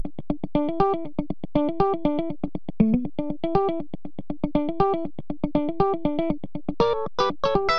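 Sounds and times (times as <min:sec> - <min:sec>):
wet funk guitar: 0:00.0 - 0:07.7.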